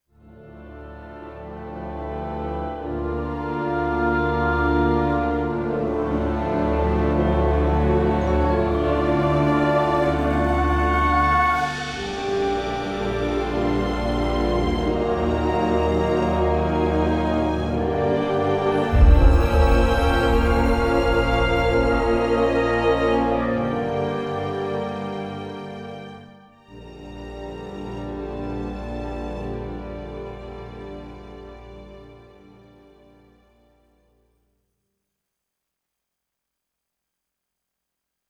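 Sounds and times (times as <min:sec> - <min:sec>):
castle music: 0:00.3 - 0:33.3.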